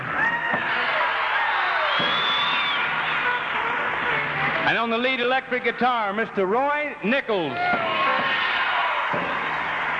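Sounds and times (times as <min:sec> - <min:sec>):
crowd applause: 0:00.0 - 0:05.4, 0:07.6 - 0:09.9
rising whoops or whistles: 0:01.5 - 0:03.4
speech: 0:04.7 - 0:08.0.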